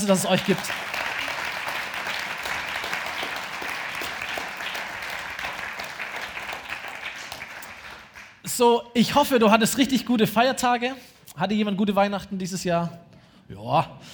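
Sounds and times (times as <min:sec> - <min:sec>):
speech: 0:00.0 - 0:01.0, 0:08.6 - 0:14.1
audience applause: 0:00.0 - 0:08.4.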